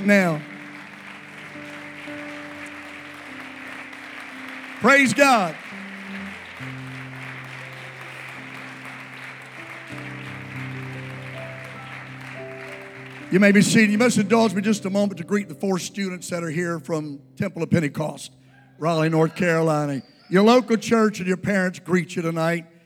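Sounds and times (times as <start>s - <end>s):
speech: 0.0s - 0.5s, 4.8s - 5.7s, 13.3s - 22.7s
audience hand clapping: 0.0s - 15.6s.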